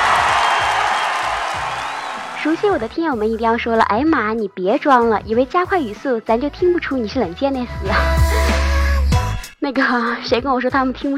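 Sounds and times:
applause: 0:00.0 - 0:02.9
cheering: 0:00.0 - 0:02.9
speech: 0:02.4 - 0:08.4, 0:09.7 - 0:11.1.

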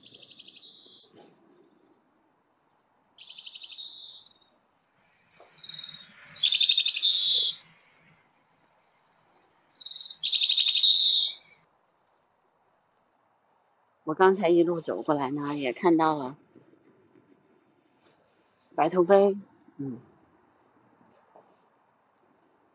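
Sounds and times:
grey-capped greenfinch buzzy trilled calls: 0:05.2 - 0:08.1, 0:09.7 - 0:11.5
speech: 0:14.1 - 0:16.4, 0:18.8 - 0:20.1.

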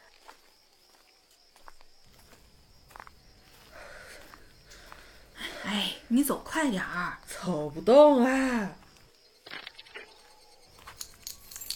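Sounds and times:
speech: 0:06.1 - 0:08.8
keys jangling: 0:10.8 - 0:11.7.

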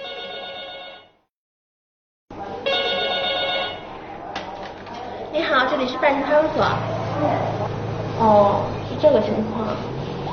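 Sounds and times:
telephone ringing: 0:00.0 - 0:01.2, 0:02.7 - 0:03.9
speech: 0:05.6 - 0:07.6, 0:08.2 - 0:10.0.

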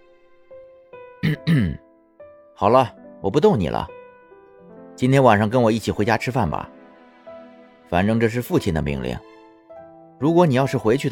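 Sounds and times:
throat clearing: 0:01.2 - 0:01.8
speech: 0:01.3 - 0:01.8, 0:02.6 - 0:04.0, 0:05.0 - 0:06.8, 0:07.9 - 0:09.3, 0:10.2 - 0:11.0.

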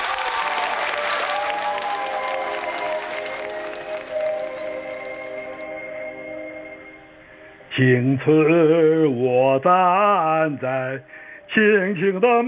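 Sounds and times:
audience applause: 0:00.0 - 0:05.7
speech: 0:07.8 - 0:12.4.

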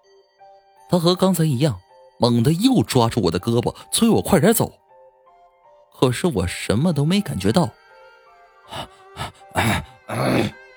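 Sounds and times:
speech: 0:00.9 - 0:04.8, 0:06.0 - 0:07.8, 0:08.7 - 0:10.6
heavy panting breath: 0:08.7 - 0:10.6.

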